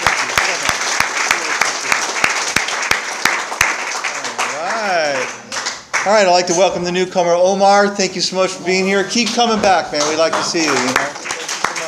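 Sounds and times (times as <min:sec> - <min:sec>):
audience applause for a speaker: 0:00.0 - 0:06.3, 0:09.1 - 0:11.8
speech: 0:06.0 - 0:11.1.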